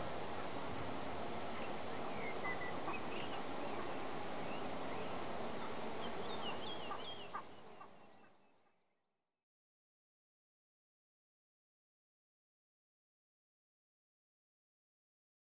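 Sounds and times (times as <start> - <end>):
rural soundscape on semi-arid cultivated land: 0.0 - 8.3.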